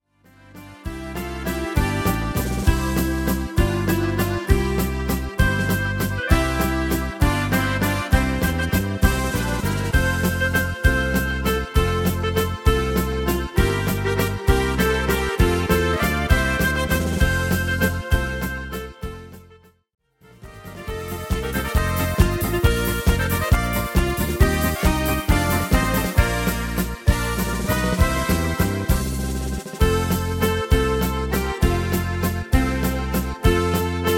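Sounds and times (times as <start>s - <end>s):
schunkel sway clapping: 1.2s - 18.8s, 20.6s - 34.1s.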